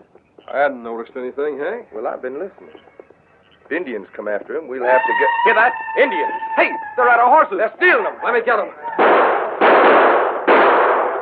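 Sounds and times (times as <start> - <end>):
speech: 0.5 - 2.9, 3.7 - 9.0
gunshots: 8.9 - 11.2.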